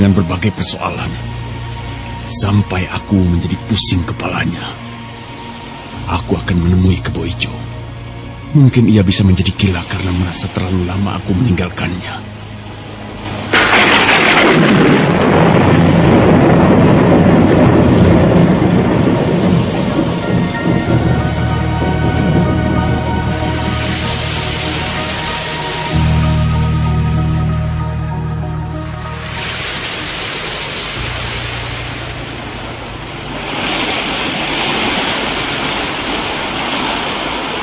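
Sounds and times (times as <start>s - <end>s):
speech: 0.0s - 1.4s, 2.2s - 4.8s, 6.1s - 7.7s, 8.5s - 12.3s
heavy pouring rain: 0.0s - 37.6s
loud thunderclap with deep rumble: 13.2s - 37.6s.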